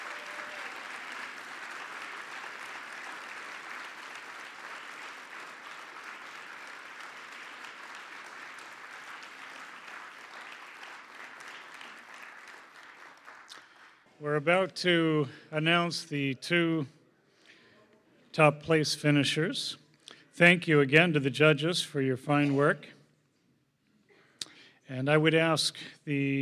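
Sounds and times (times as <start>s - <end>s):
large audience applause: 0.0s - 14.1s
speech: 14.2s - 17.0s, 18.4s - 19.8s, 20.4s - 23.0s, 24.9s - 26.4s.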